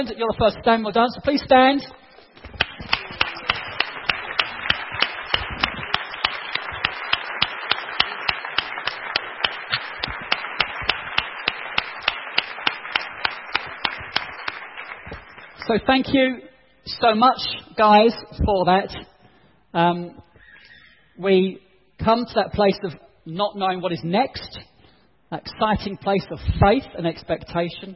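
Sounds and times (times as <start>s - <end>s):
speech: 0.0s - 2.6s, 15.7s - 19.1s, 19.7s - 20.3s, 21.2s - 24.7s, 25.3s - 27.9s
audience applauding: 2.4s - 15.6s.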